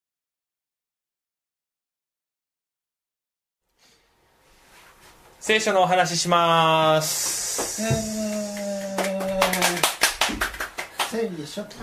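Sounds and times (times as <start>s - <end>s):
speech: 5.4s - 8.8s, 11.1s - 11.8s
thin scattered audience applause: 7.9s - 11.2s.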